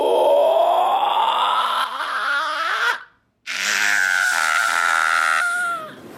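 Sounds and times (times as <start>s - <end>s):
human voice imitating a creature's horrifying screech: 0.0s - 6.0s.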